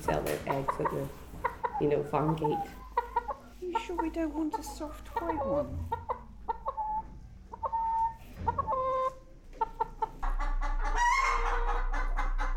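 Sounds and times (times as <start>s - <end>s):
speech: 0.0s - 1.2s, 1.8s - 2.8s, 3.6s - 6.0s
egg-laying hens clucking and squawking in a back-garden paddock: 0.0s - 12.5s.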